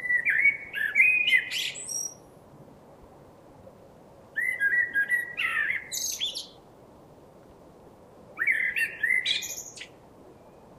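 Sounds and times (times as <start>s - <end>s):
common blackbird Turdus merula song: 0.0s - 2.2s, 4.4s - 6.6s, 8.4s - 10.7s.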